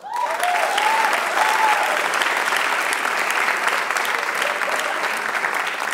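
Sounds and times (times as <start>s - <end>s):
whoops and vocal cries: 0.0s - 2.0s
audience clapping: 0.0s - 5.9s.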